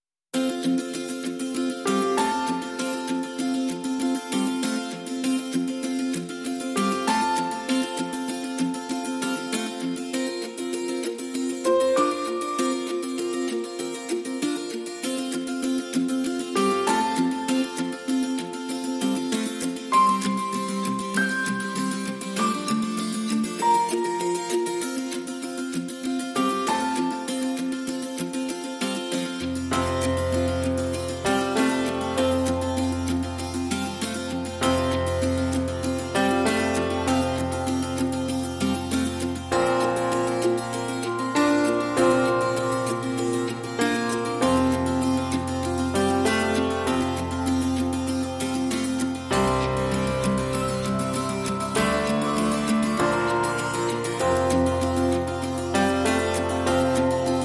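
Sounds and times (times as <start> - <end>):
music mix without drums or bass: 0.4 - 57.4.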